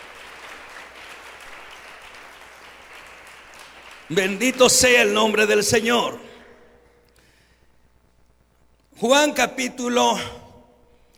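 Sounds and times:
audience applause: 0.0s - 6.1s
speech: 4.1s - 6.3s, 9.0s - 10.4s.

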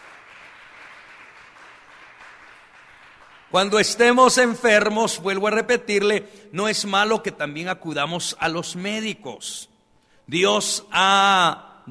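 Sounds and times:
audience applause: 0.0s - 3.8s
speech: 3.5s - 9.7s, 10.3s - 11.8s.

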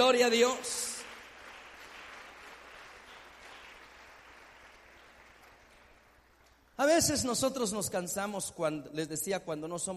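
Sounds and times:
speech: 0.0s - 0.8s, 6.8s - 9.9s
audience applause: 0.8s - 6.3s.

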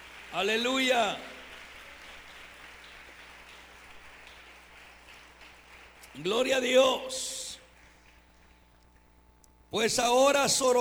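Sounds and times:
audience applause: 0.0s - 6.6s
speech: 0.3s - 1.3s, 6.2s - 7.4s, 9.7s - 10.8s.

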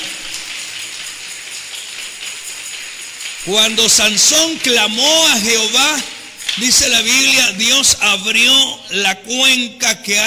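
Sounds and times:
audience applauding: 0.0s - 6.0s
speech: 3.4s - 10.2s.

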